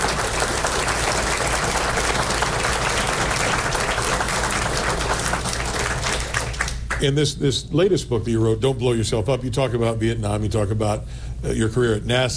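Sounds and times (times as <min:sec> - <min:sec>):
audience applause for veterans: 0:00.0 - 0:07.0
speech: 0:07.0 - 0:12.3.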